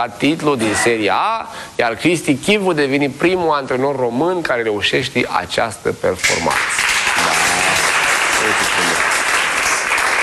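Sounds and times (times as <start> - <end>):
speech: 0.0 - 6.9
large audience applause: 6.5 - 10.2.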